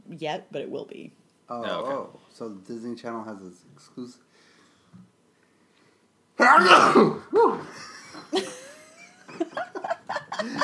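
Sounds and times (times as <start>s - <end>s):
speech: 0.2s - 5.0s, 6.4s - 8.6s
person sneezing: 6.4s - 7.7s.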